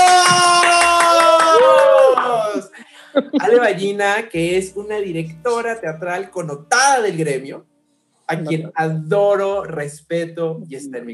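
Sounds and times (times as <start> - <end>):
audience applause: 0.0 - 2.8
laughter: 0.2 - 4.3
speech: 3.2 - 7.7, 8.3 - 11.1.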